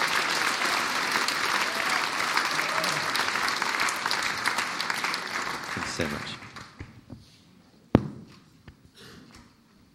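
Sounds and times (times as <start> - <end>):
audience applause: 0.0 - 6.8
speech: 6.0 - 6.4.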